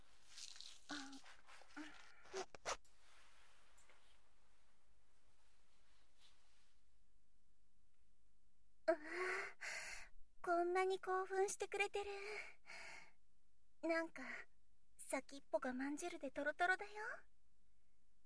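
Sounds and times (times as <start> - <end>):
zipper being pulled down: 0.2 - 2.9
speech: 10.7 - 12.6, 13.8 - 14.5, 15.1 - 17.3.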